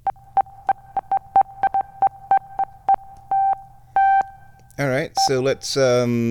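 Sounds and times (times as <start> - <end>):
synthesizer beep: 0.0 - 4.4
speech: 4.8 - 6.2.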